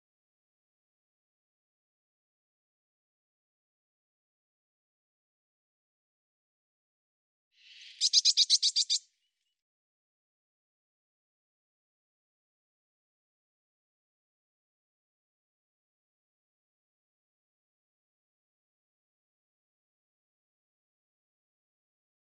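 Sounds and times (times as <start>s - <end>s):
Eurasian blue tit scolding with rasping buzzy notes: 7.6s - 9.0s.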